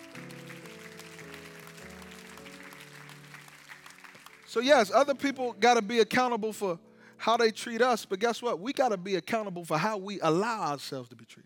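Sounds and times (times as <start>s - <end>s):
audience clapping: 0.0s - 5.7s
speech: 4.5s - 11.4s.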